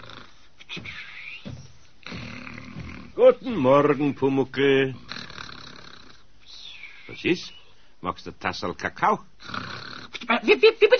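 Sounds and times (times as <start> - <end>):
snoring: 0.0 - 0.4, 2.0 - 3.2, 5.0 - 6.2, 9.4 - 10.2
speech: 3.2 - 5.0, 7.2 - 9.6, 10.2 - 10.9.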